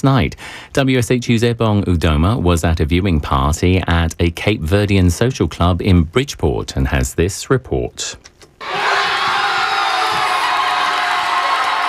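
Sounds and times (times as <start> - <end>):
speech: 0.0 - 9.0
fans cheering a World Cup goal at a Cape Verdean social club in Bridgeport: 8.6 - 11.8.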